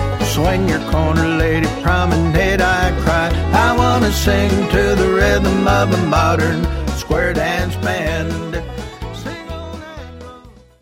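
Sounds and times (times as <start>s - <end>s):
person singing: 0.1s - 10.6s.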